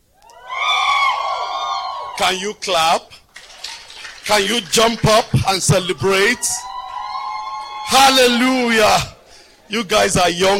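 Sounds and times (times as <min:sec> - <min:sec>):
audience screaming: 0:00.2 - 0:02.6, 0:04.2 - 0:09.2
speech: 0:02.2 - 0:03.2, 0:04.3 - 0:06.7, 0:07.9 - 0:09.1, 0:09.7 - 0:10.5.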